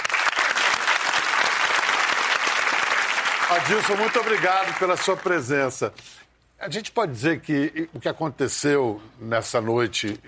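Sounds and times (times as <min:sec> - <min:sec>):
audience applause: 0:00.0 - 0:05.5
speech: 0:03.5 - 0:10.2.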